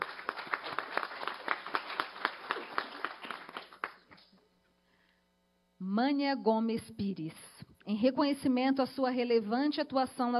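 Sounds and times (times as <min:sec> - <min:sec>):
crowd applause: 0:00.0 - 0:04.3
speech: 0:06.0 - 0:10.3.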